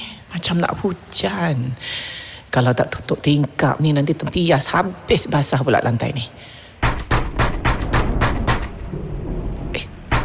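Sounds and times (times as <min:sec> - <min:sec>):
speech: 0:00.4 - 0:06.6
knocking on a door: 0:06.8 - 0:08.7.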